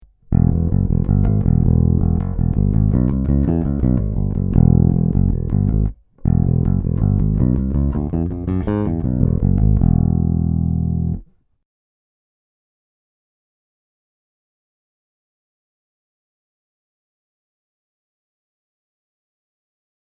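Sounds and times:
Cort B4 Plus AS active neck pickup tone: 0:00.0 - 0:11.3.

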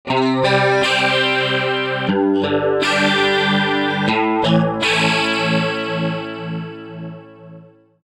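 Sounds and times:
TC chorus effect: 0:00.0 - 0:08.0.

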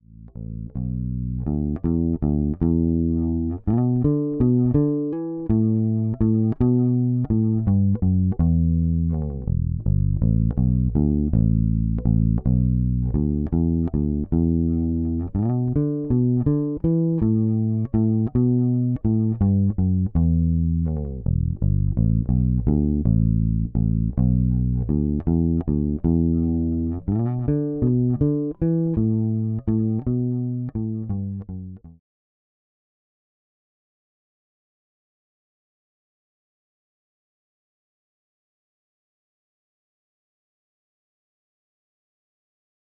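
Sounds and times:
Fender Precision Bass through Radial DI box: 0:00.0 - 0:32.0.

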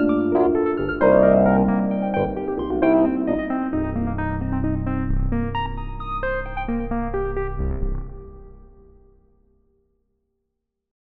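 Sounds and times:
Nord Stage 3 electric piano arpeggiator: 0:00.0 - 0:07.6.

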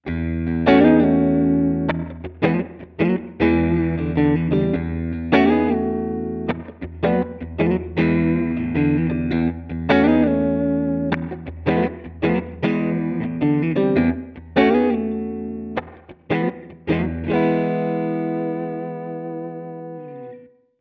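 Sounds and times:
Valeton GP 200LT Little Jazz guitar amp tone: 0:00.0 - 0:20.6.

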